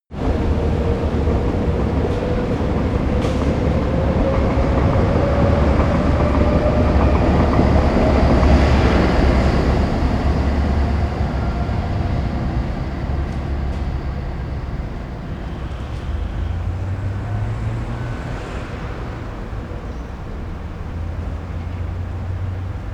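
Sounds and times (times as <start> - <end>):
city train passing: 0.1 - 22.9.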